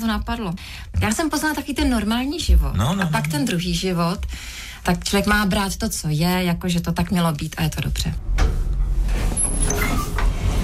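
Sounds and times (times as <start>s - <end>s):
speech: 0.0s - 8.5s
elevator doors opening at the main building at Kavčí hory in Prague: 8.2s - 10.6s.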